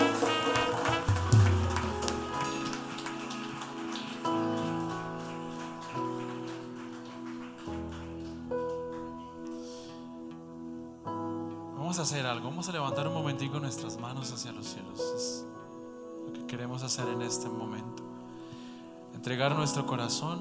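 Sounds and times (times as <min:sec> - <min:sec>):
crowd clapping: 0:00.0 - 0:09.9
sustained keyboard chords: 0:00.0 - 0:20.3
speech: 0:11.9 - 0:15.6, 0:16.4 - 0:18.0, 0:19.2 - 0:20.3.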